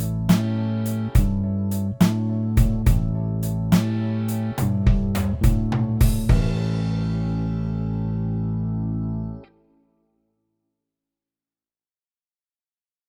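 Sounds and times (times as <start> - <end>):
blues music in A: 0.0 - 9.4.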